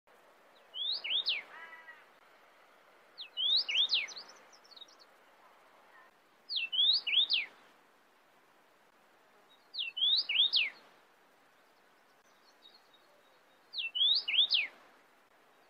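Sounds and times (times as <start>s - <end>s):
cardinal singing sweeping whistled phrases: 0.7s - 1.5s, 3.2s - 4.3s, 6.5s - 7.5s, 9.8s - 10.8s, 13.7s - 14.7s.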